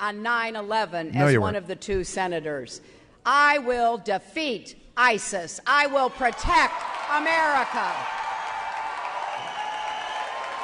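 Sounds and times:
speech: 0.0 - 8.2
crowd cheering and applauding at a speech: 6.7 - 10.6.

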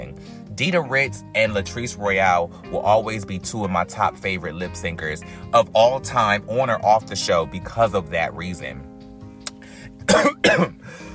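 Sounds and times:
speech: 0.6 - 8.9, 10.1 - 11.0
person coughing: 10.0 - 11.0.

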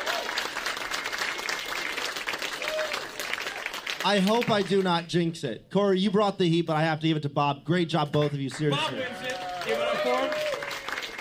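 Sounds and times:
audience applause at a Roast Battle Chicago tournament battle: 0.0 - 4.9, 8.2 - 11.2
speech: 4.0 - 10.6.

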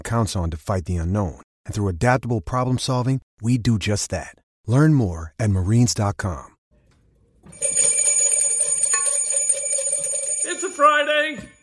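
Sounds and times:
speech: 0.1 - 6.5
bells being rung: 7.5 - 11.5.

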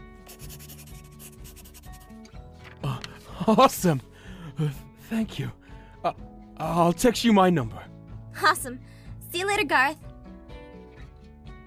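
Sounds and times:
pen writing a phone number on paper: 0.3 - 2.2
speech: 3.4 - 10.1.

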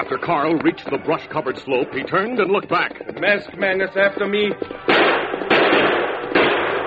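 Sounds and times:
speech: 0.2 - 4.8
gunshots: 4.8 - 6.8.

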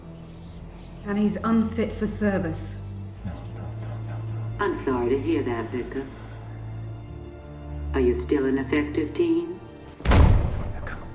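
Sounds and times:
speech: 1.0 - 3.4, 4.7 - 6.2, 7.9 - 9.6
laughter: 3.2 - 6.1
heavy door slamming shut: 9.9 - 11.1.

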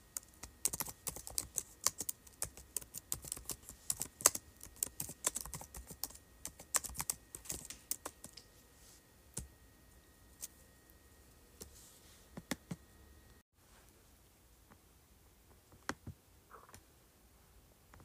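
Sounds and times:
faint steady tone: 0.0 - 15.6
keyboard typing: 0.1 - 8.4.

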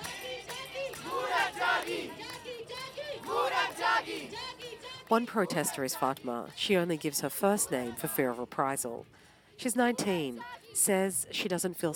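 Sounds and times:
music: 0.0 - 5.2
protesters clapping to music: 0.0 - 5.2
protesters chanting: 0.0 - 8.4, 9.8 - 11.0
speech: 4.3 - 11.9.

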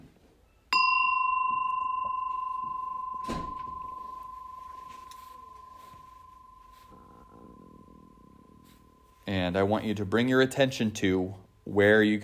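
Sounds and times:
meditation bell ringing: 0.7 - 10.1
speech: 9.5 - 12.2.

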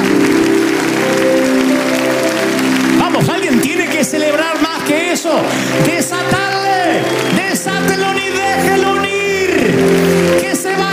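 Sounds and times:
audience applause and cheering: 0.0 - 10.9.

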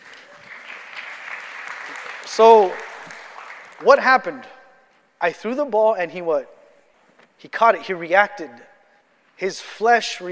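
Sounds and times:
audience applause: 0.0 - 3.8
speech: 2.3 - 2.8, 3.8 - 4.5, 5.2 - 6.5, 7.4 - 8.7, 9.4 - 10.3.

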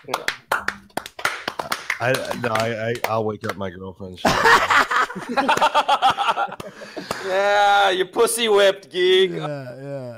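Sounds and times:
speech: 0.0 - 0.7, 2.0 - 10.1
people clapping: 0.0 - 3.7, 5.0 - 7.4
laughter: 4.2 - 7.5.

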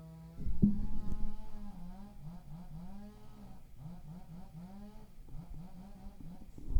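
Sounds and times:
chainsaws running: 0.4 - 6.7.

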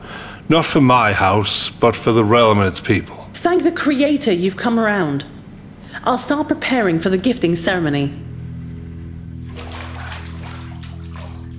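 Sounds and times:
low hum: 0.0 - 11.5
speech: 0.5 - 5.4, 6.0 - 8.3
water splashing as a girl is washed: 9.4 - 11.5.

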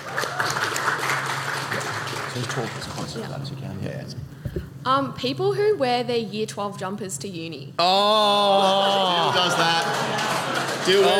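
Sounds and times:
audience applause: 0.0 - 3.0, 9.4 - 11.1
speech: 2.4 - 11.1.

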